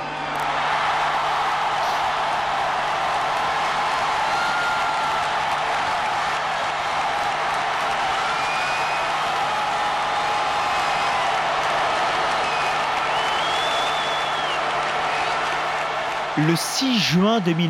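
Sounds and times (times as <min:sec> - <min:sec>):
huge stadium crowd cheering and applauding: 0:00.0 - 0:17.6
crowd high whistles: 0:12.4 - 0:15.4
speech: 0:16.4 - 0:17.6.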